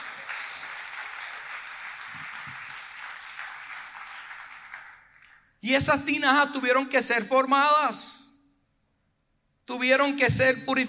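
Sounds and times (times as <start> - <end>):
audience applause: 0.0 - 5.4
speech: 5.6 - 8.2, 9.8 - 10.8.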